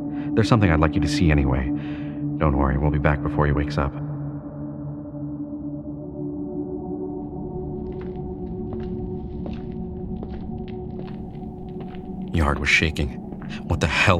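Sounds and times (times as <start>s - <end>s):
speech: 0.4s - 4.0s, 12.4s - 14.1s
footsteps going down a hall: 7.7s - 13.8s.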